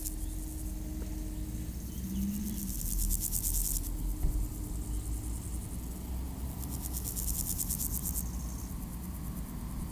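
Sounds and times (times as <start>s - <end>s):
grasshopper stridulating beside a road in Aveize, France: 0.0s - 9.8s.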